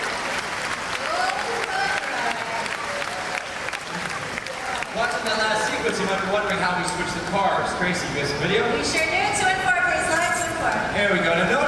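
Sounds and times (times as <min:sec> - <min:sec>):
faint cheers and voices: 0:00.0 - 0:04.9
audience applause: 0:00.0 - 0:07.5
speech: 0:05.9 - 0:09.6, 0:10.6 - 0:11.6.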